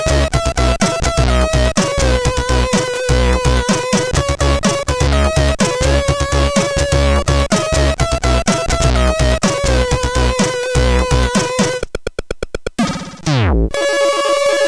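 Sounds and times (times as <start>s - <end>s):
music on CSG 8580R5 sound chip: 0.0s - 11.9s, 12.8s - 14.6s.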